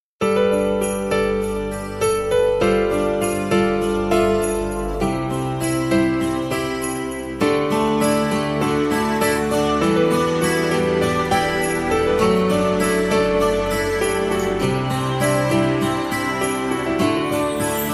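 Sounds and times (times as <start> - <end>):
festive melody: 0.3 - 17.9.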